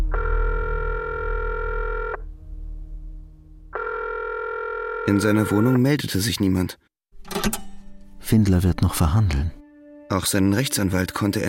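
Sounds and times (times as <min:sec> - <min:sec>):
brighter higher-pitched telephone tone: 0:00.1 - 0:02.2, 0:03.7 - 0:05.7
steady buzzing electronic telephone line tone in a phone booth: 0:00.1 - 0:02.3, 0:03.7 - 0:05.2
speech: 0:05.1 - 0:07.6, 0:08.3 - 0:11.4.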